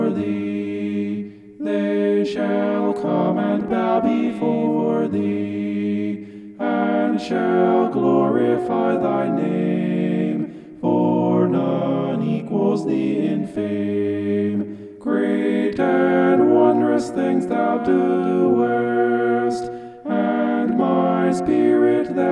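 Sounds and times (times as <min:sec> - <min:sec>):
homophonic vocal singing: 0:00.0 - 0:22.3.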